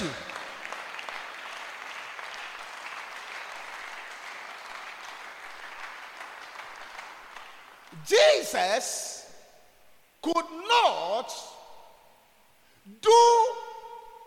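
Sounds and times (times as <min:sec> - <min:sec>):
audience clapping hands: 0:00.0 - 0:08.1
speech: 0:08.0 - 0:09.1, 0:10.2 - 0:11.5, 0:12.9 - 0:13.6.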